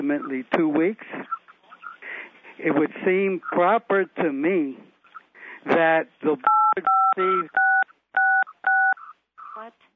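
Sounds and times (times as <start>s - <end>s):
speech: 0.1s - 1.4s, 2.6s - 4.9s, 5.6s - 7.7s
telephone keypad tones from pressing phone buttons: 6.5s - 9.1s.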